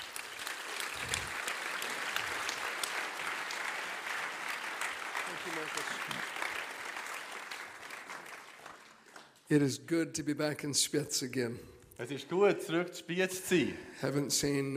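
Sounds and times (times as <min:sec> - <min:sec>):
audience applause: 0:00.0 - 0:09.5
speech: 0:05.6 - 0:06.4, 0:09.5 - 0:14.7.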